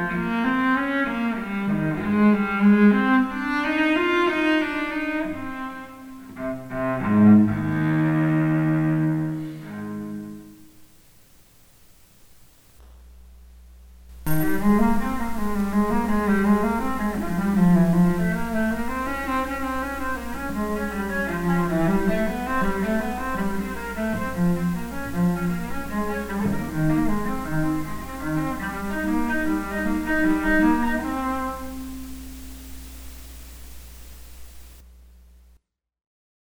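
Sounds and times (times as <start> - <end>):
cello: 0.0 - 10.7, 14.3 - 32.6.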